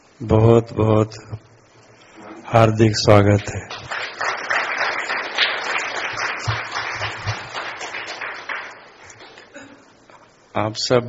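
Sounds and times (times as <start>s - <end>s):
speech: 0.2s - 1.5s, 2.5s - 4.0s, 10.6s - 11.0s
audience applause: 3.4s - 9.5s.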